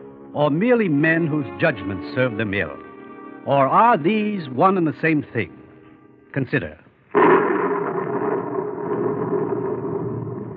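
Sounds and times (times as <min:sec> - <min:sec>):
speech: 0:00.3 - 0:02.8, 0:03.4 - 0:05.6, 0:06.3 - 0:06.8
rolling thunder: 0:07.1 - 0:10.5.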